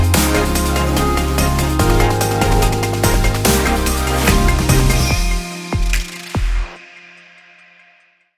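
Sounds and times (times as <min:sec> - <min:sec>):
uplifting summer bass: 0:00.0 - 0:05.5.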